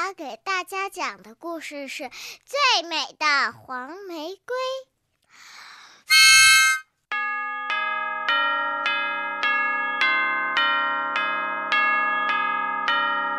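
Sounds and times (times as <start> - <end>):
speech: 0.1 - 5.5
morning church bells ringing in a peal: 7.1 - 13.3.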